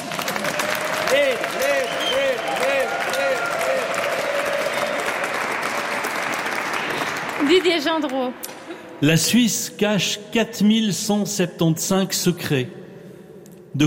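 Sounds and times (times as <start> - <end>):
audience applause: 0.0 - 8.3
speech: 7.5 - 8.4, 9.0 - 12.8.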